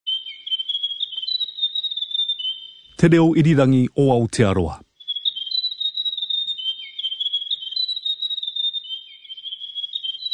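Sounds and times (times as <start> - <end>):
grey warbler singing a high wavering trill: 0.1 - 3.0, 5.0 - 10.3
speech: 3.0 - 4.9.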